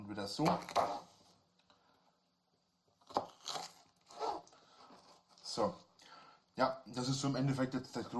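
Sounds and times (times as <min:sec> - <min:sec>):
speech: 0:00.1 - 0:01.1, 0:05.6 - 0:05.8, 0:06.6 - 0:08.1
knife cutting a bell pepper: 0:00.3 - 0:01.1, 0:03.0 - 0:04.4.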